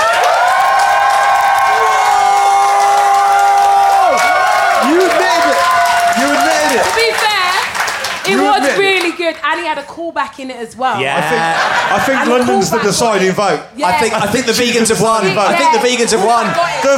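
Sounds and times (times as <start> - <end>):
audience cheering: 0.0 - 8.8, 14.6 - 16.9
audience applauding: 0.0 - 9.4, 15.5 - 16.9
speech: 9.3 - 16.9
laughter: 11.0 - 13.3.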